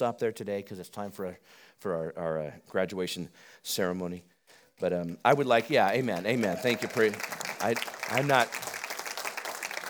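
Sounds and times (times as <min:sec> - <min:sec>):
speech: 0:00.0 - 0:08.7
audience clapping at a graduation ceremony: 0:05.7 - 0:09.8.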